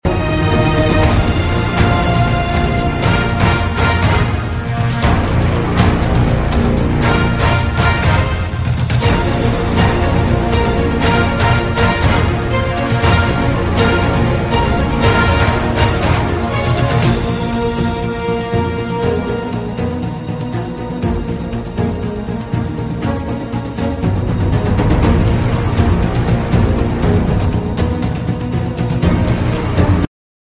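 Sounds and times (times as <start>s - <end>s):
new season music: 0.0s - 30.1s.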